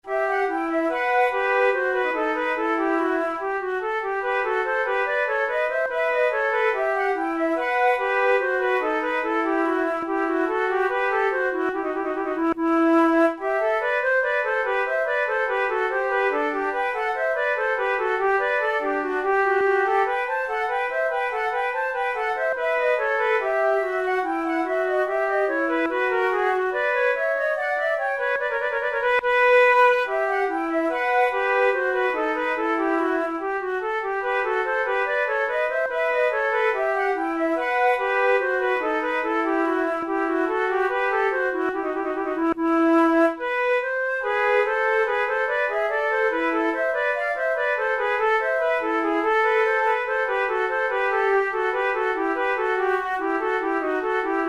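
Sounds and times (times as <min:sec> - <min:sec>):
flute: 0:00.0 - 0:54.4.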